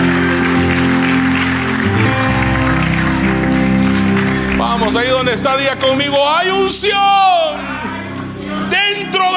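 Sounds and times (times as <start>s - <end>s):
audience applauding: 0.0s - 9.2s
speech: 4.9s - 7.4s.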